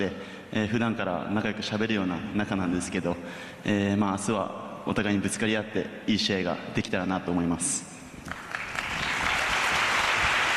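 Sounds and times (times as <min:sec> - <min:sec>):
speech: 0:00.0 - 0:08.3
audience applauding at an athletes' event: 0:08.3 - 0:10.5.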